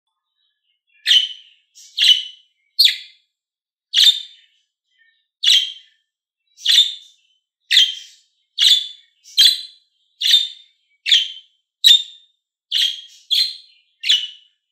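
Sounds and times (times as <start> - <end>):
lovebird screechy chirps: 1.0 - 3.2, 5.4 - 5.9, 6.6 - 14.4.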